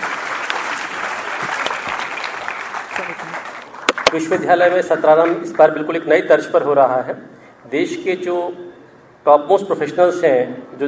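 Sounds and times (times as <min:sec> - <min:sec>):
audience applause: 0:00.0 - 0:04.2
speech: 0:04.1 - 0:08.6, 0:09.2 - 0:10.8.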